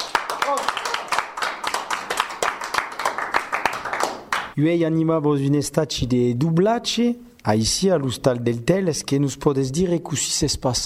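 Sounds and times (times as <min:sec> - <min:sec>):
group clapping: 0:00.0 - 0:04.6
speech: 0:04.6 - 0:10.8.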